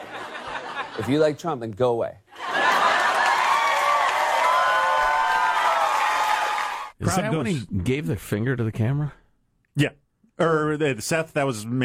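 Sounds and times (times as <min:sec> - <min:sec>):
laughter: 0:00.0 - 0:01.4, 0:02.4 - 0:03.5
speech: 0:01.0 - 0:02.2, 0:07.0 - 0:09.2, 0:09.8 - 0:11.8
crowd cheering wildly: 0:02.3 - 0:07.3.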